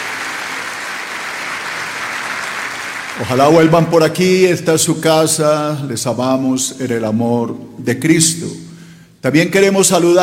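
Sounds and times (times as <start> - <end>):
audience applause: 0.0 - 3.7
speech: 3.2 - 10.2.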